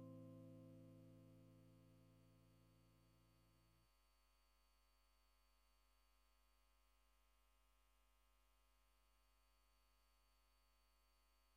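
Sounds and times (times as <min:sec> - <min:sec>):
guitar: 0:00.0 - 0:02.0.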